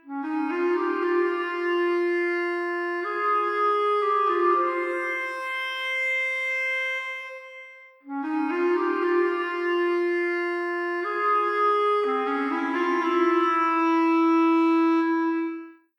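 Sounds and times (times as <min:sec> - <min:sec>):
clarinet: 0:00.0 - 0:15.9.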